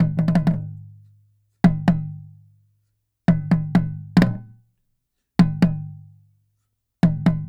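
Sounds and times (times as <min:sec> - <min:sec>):
small taiko drum from Asia: 0:00.0 - 0:01.0, 0:01.6 - 0:02.4, 0:03.3 - 0:04.6, 0:05.4 - 0:06.0, 0:07.0 - 0:07.4.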